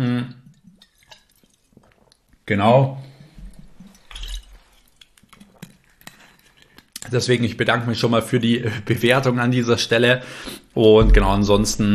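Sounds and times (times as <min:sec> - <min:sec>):
person taking a sip of water: 0:00.5 - 0:02.4, 0:03.8 - 0:07.0
speech: 0:02.5 - 0:03.1, 0:07.1 - 0:11.9.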